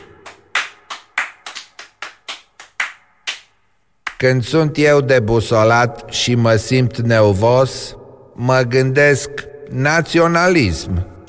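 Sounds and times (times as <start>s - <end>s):
hand claps: 0.0s - 4.2s
speech: 4.2s - 11.1s.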